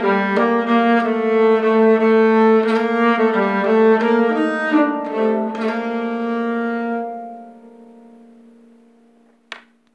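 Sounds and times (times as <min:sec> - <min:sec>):
nyckelharpa playing second voice of a polska from Skåne: 0:00.0 - 0:09.2.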